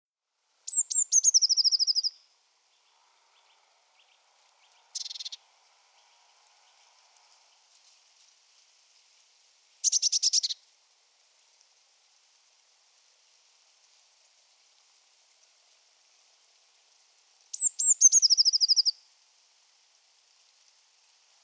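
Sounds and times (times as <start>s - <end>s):
Eurasian blue tit calling: 0.7s - 2.2s, 4.9s - 5.4s, 9.8s - 10.6s, 17.5s - 18.9s.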